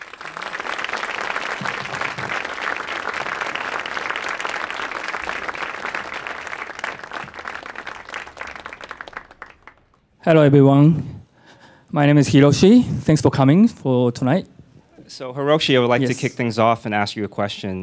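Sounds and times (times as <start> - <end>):
audience applause welcoming a guest at an evening event in New York: 0.0 - 10.1
speech: 10.2 - 11.2, 11.9 - 14.5, 15.1 - 17.8.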